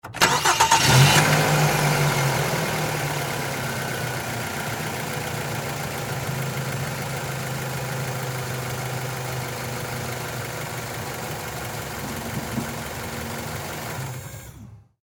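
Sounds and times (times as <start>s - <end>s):
Mazda 3 car engine idling: 0.2s - 14.6s.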